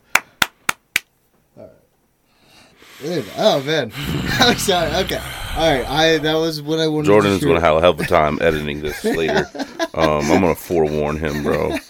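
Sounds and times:
crisp sharp hand claps: 0.0s - 1.1s
speech: 3.0s - 11.8s
person vocalizing: 3.9s - 6.5s
laughter: 4.0s - 6.4s, 7.3s - 11.8s.

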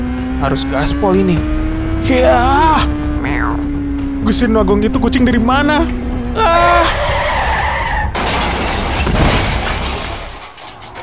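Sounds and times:
speech: 0.4s - 3.6s, 4.2s - 7.1s
car skidding: 6.3s - 10.0s
car crashing: 6.9s - 11.0s.

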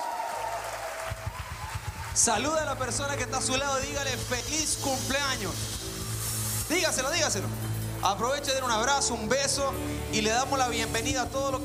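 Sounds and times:
audience applause: 0.0s - 3.5s
speech: 2.2s - 5.8s, 6.7s - 11.6s.

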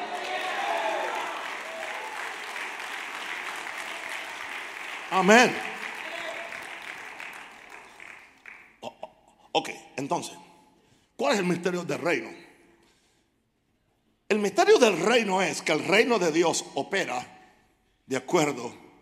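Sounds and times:
audience applause: 0.0s - 8.8s
speech: 5.1s - 5.7s, 9.6s - 10.4s, 11.2s - 12.4s, 14.3s - 17.4s, 18.1s - 18.8s.

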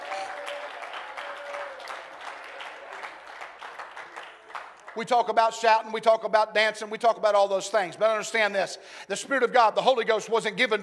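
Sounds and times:
audience clapping hands in praise: 0.0s - 5.5s
speech: 5.0s - 10.8s.

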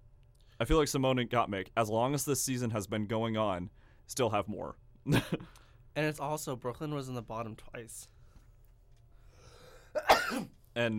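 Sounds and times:
speech: 0.6s - 8.2s, 10.0s - 10.9s
sneeze: 10.0s - 10.6s.

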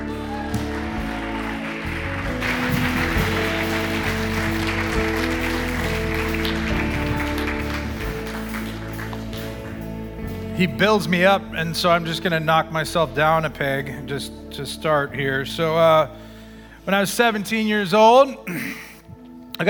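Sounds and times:
audience applause welcoming a speaker: 0.0s - 10.1s
low music: 0.0s - 19.6s
speech: 10.6s - 18.8s.

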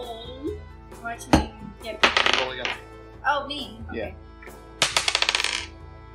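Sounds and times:
speech: 1.2s - 4.6s
dice rolling on a table: 2.0s - 2.8s, 4.8s - 5.7s.

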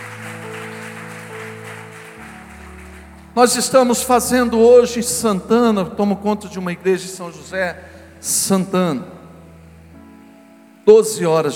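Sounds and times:
audience applause: 0.0s - 3.8s
speech: 3.4s - 9.2s, 10.9s - 11.5s.

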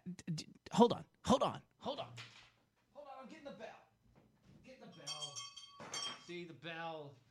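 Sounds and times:
speech: 0.1s - 2.0s, 6.3s - 7.2s
small bell being picked up and rung: 4.8s - 6.5s.

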